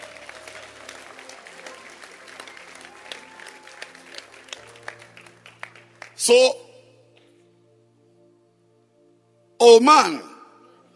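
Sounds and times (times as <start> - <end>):
hand clapping: 0.0 - 6.2
speech: 6.2 - 6.6, 9.6 - 10.3.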